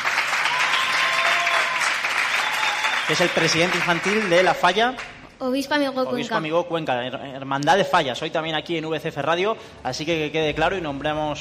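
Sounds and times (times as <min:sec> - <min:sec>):
audience applause: 0:00.0 - 0:05.1
speech: 0:03.1 - 0:11.4.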